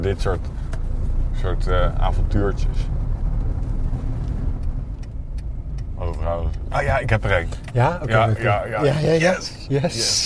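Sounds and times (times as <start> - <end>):
speech: 0.0 - 0.6, 1.4 - 3.0, 6.0 - 10.2
car driving past: 0.3 - 7.7
faint clicks and ticks: 3.3 - 8.2.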